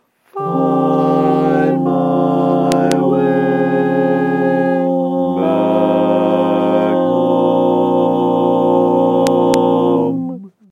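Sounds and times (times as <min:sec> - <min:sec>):
barbershop tags all parts singing: 0:00.4 - 0:10.4.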